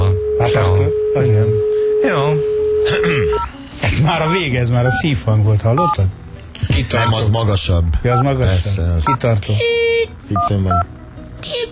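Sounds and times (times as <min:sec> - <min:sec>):
telephone keypad dialing tones: 0:00.0 - 0:03.5, 0:04.2 - 0:05.0, 0:05.8 - 0:06.0, 0:10.4 - 0:10.9
speech: 0:00.5 - 0:11.7.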